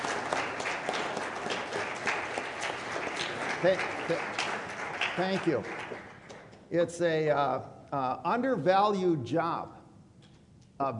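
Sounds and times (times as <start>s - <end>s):
round of applause for fathers: 0.0s - 6.5s
speech: 3.6s - 4.4s, 5.2s - 5.9s, 6.7s - 9.8s, 10.8s - 10.9s.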